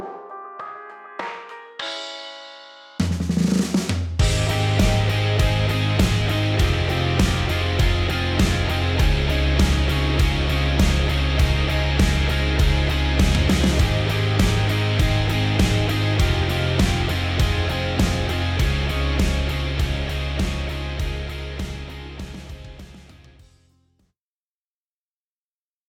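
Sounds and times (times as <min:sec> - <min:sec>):
pop-rock music: 0:00.0 - 0:03.3, 0:04.2 - 0:23.5.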